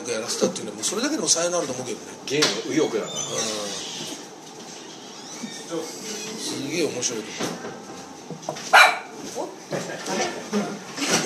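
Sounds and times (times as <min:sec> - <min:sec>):
speech: 0:00.1 - 0:04.2, 0:05.7 - 0:10.8
pet dog Angie barking and yipping: 0:08.7 - 0:09.2.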